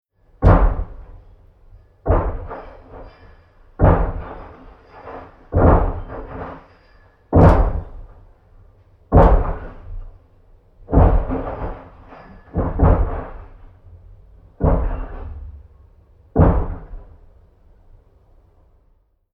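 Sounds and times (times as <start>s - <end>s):
hammering from domestic building work next door: 0.4s - 1.3s, 2.0s - 8.3s, 9.1s - 10.1s, 10.9s - 13.7s, 14.5s - 15.6s, 16.4s - 17.2s
heavy banging from domestic building work next door: 0.4s - 1.3s, 1.9s - 8.4s, 9.1s - 10.2s, 10.8s - 17.3s.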